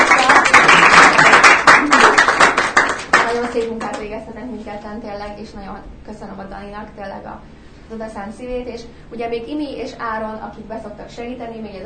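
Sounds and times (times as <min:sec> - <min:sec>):
small group clapping for a lighting technician: 0:00.0 - 0:04.1
speech: 0:05.4 - 0:11.8.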